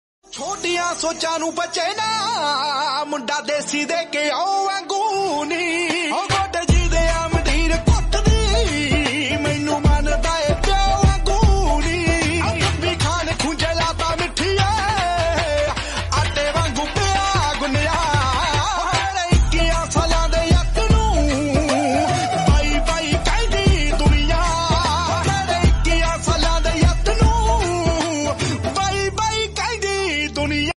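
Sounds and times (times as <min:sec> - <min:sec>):
instrumental music: 0:00.3 - 0:30.7.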